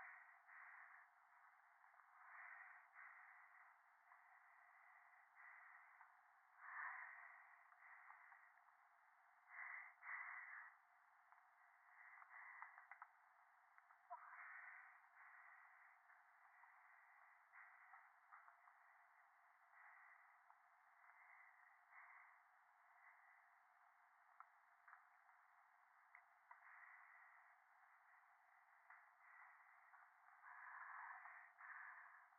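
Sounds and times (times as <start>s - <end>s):
breathing close against the right ear on the phone in the mountains: 0.0s - 8.6s, 9.5s - 10.8s, 11.6s - 13.1s, 14.2s - 18.6s, 19.7s - 23.6s, 26.5s - 28.2s, 28.9s - 32.3s.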